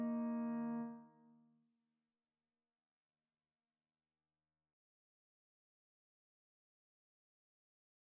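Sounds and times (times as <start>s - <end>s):
piano: 0.0s - 1.0s.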